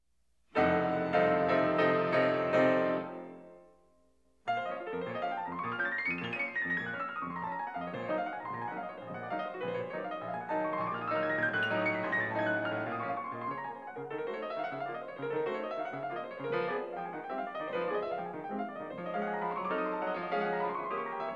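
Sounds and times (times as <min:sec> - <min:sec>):
piano: 0:00.5 - 0:21.3.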